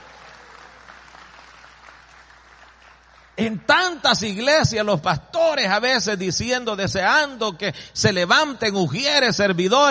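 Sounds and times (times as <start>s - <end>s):
audience clapping hands: 0.0s - 3.5s
speech: 3.4s - 9.9s.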